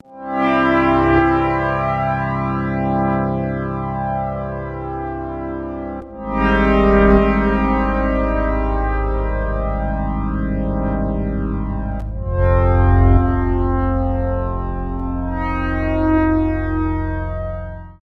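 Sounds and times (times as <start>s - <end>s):
synth pad: 0.0s - 18.0s.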